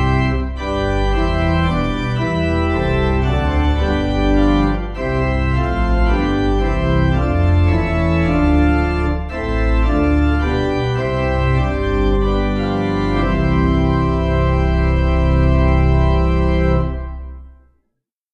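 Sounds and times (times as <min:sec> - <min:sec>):
organ playing a hymn: 0:00.0 - 0:17.6.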